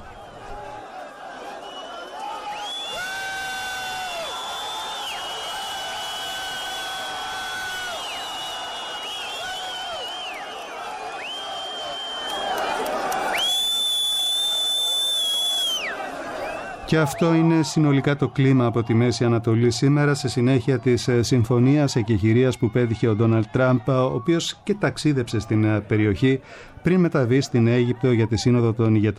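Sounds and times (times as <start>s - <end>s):
crowd whistling: 0.0s - 24.8s
crowd celebrating and cheering: 0.0s - 29.1s
speech: 16.9s - 29.1s.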